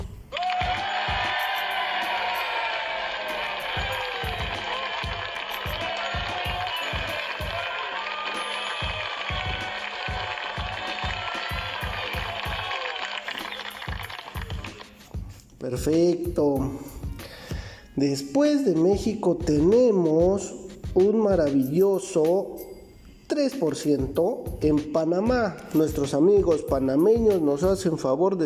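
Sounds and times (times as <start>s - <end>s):
applause: 0.3s - 15.0s
speech: 15.7s - 16.9s, 18.0s - 22.6s, 23.4s - 28.4s.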